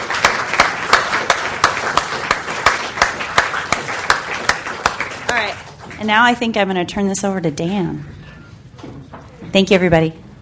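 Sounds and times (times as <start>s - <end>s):
audience applause: 0.0s - 6.0s
speech: 6.0s - 8.2s, 9.5s - 10.2s.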